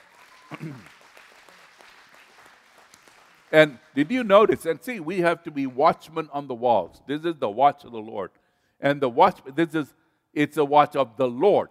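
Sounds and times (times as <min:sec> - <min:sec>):
audience clapping: 0:00.0 - 0:05.8
speech: 0:00.5 - 0:01.0, 0:03.5 - 0:11.7.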